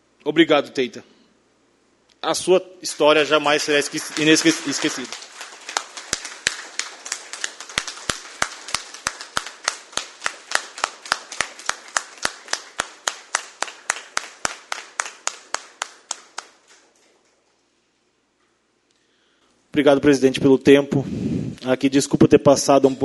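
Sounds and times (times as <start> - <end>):
speech: 0.2 - 1.2, 2.2 - 5.2, 19.8 - 23.0
round of applause: 2.9 - 17.1.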